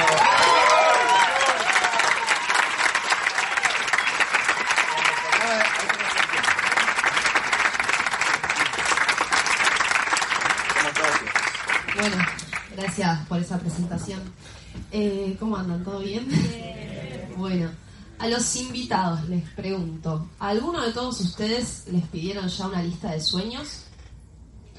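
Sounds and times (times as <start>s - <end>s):
large audience applause: 0.0s - 12.8s
speech: 13.1s - 16.8s, 17.4s - 23.8s.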